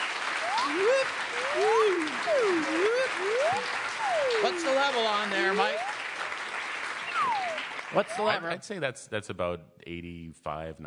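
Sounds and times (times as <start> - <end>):
audience applause: 0.0 - 8.6
speech: 0.7 - 5.9, 7.9 - 10.8.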